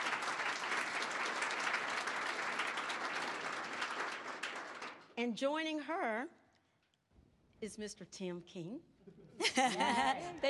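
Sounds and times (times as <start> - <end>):
audience applause: 0.0 - 5.1
speech: 5.2 - 6.4, 7.6 - 10.4
laughter: 9.0 - 10.4.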